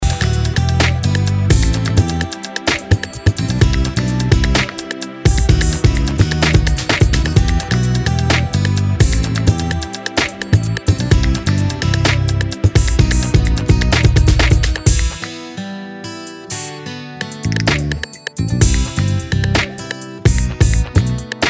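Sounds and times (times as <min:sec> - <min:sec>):
instrumental music: 0:00.0 - 0:21.4.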